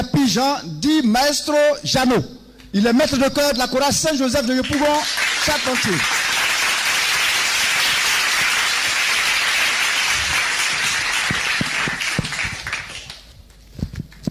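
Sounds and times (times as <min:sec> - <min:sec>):
speech: 0:00.0 - 0:06.2
crowd applauding: 0:04.6 - 0:13.6.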